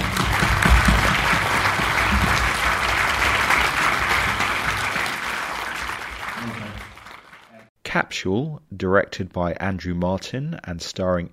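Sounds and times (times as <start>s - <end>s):
audience applause: 0.0s - 7.7s
speech: 8.0s - 11.3s.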